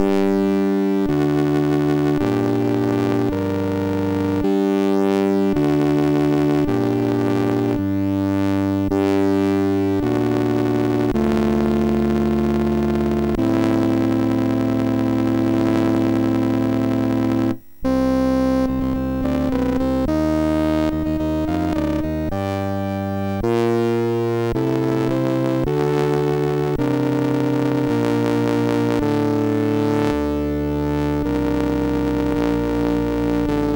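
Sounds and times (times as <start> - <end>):
MOS6581R2 SID chip synth: 0.0 - 33.7.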